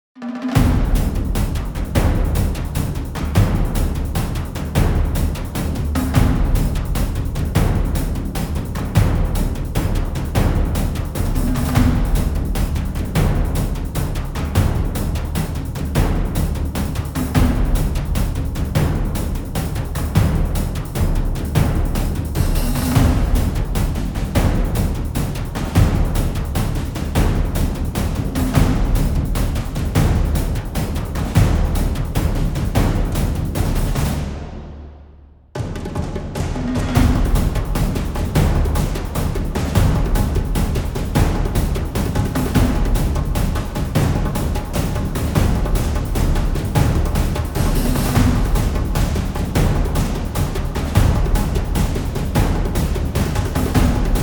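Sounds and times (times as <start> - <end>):
drums: 0.2 - 54.2.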